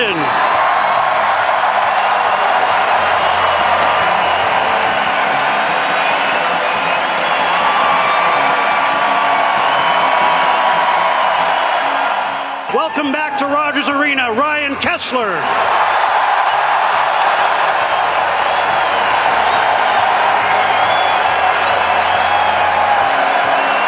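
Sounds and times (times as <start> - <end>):
large arena crowd cheering and applauding: 0.0 - 23.8
crowd whistles and whoops: 1.9 - 12.9, 16.4 - 23.8
speech: 12.9 - 16.0.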